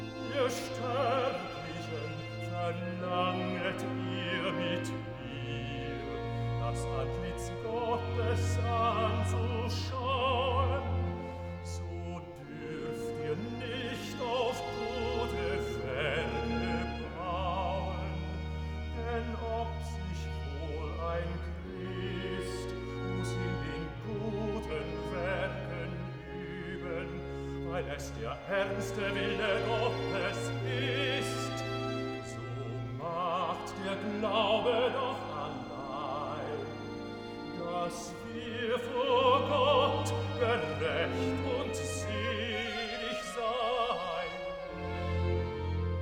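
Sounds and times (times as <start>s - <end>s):
bass singing recitative: 0.1s - 45.8s.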